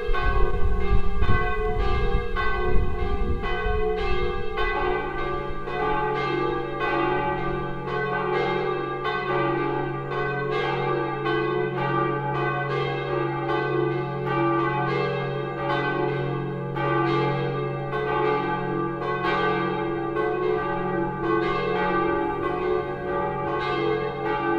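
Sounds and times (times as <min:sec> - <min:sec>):
old church bell peal in D F sharp G sharp in Bad Schwartau-Rensefeld: 0:00.0 - 0:24.5.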